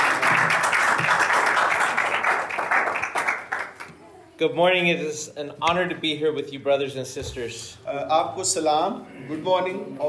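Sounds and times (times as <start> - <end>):
audience applause welcoming a speaker: 0.0 - 3.9
speech: 4.4 - 10.0.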